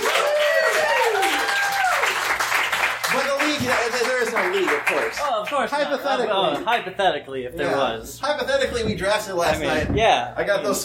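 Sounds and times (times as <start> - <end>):
audience applause welcoming a speaker at a live event: 0.0 - 5.3
speech: 4.9 - 10.8
loud talking voices: 5.2 - 10.8.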